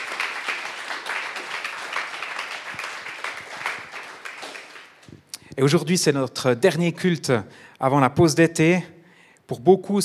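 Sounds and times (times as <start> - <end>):
audience applauding: 0.0 - 5.1
speech: 5.6 - 10.0.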